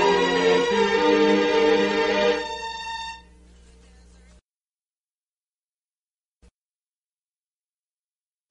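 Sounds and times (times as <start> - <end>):
instrumental music: 0.0 - 3.4.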